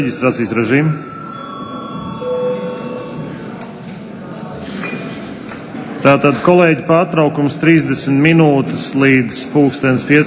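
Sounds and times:
speech: 0.0 - 1.2, 6.0 - 10.2
parliament session bell ringing: 0.6 - 3.5.

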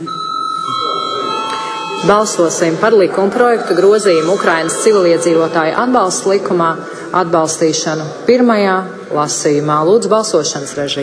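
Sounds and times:
parliament chamber bell ringing before a vote: 0.0 - 7.0
speech: 2.0 - 11.0.

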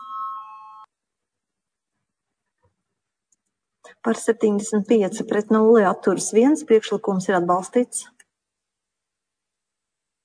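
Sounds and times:
parliament voting bell signal: 0.0 - 0.9
speech: 4.0 - 8.2.

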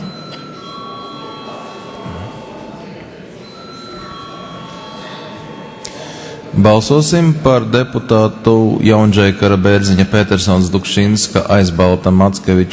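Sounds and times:
parliament voting bell ringing: 0.0 - 8.4
speech: 6.6 - 12.7.

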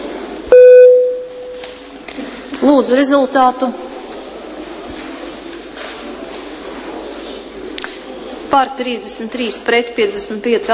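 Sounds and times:
soft murmur: 0.0 - 10.7
parliamentary voting bell signal: 0.5 - 1.5
speech: 2.6 - 3.8, 8.5 - 10.7.

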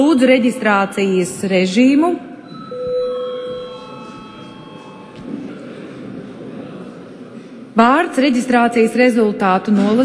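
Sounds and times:
speech: 0.0 - 2.3, 7.8 - 10.0
low murmur: 0.0 - 10.0
parliament chamber bell ringing: 0.8 - 5.5.

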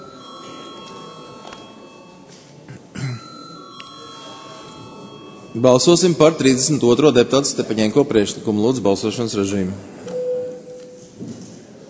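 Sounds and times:
chairman's bell rung before a vote: 0.0 - 7.0
person coughing: 2.7 - 3.3
speech: 5.6 - 10.0.

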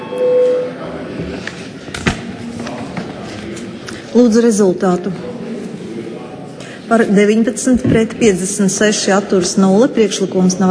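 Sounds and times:
parliament voting bell ringing: 0.0 - 0.8
speech: 4.2 - 5.3, 6.9 - 10.7.

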